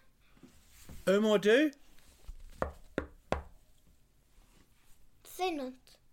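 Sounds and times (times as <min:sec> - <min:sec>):
speech: 0:01.1 - 0:01.8, 0:05.5 - 0:05.8
knocking on a door: 0:02.5 - 0:03.6.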